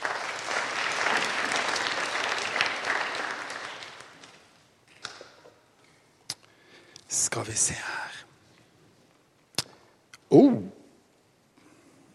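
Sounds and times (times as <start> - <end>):
audience applauding: 0.0 - 4.6
speech: 7.4 - 8.1.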